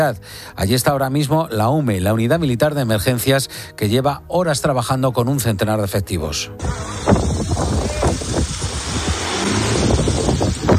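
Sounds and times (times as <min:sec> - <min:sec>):
speech: 0:00.0 - 0:07.1
strong wind gusting at a forest fire in Ávila: 0:06.6 - 0:10.7.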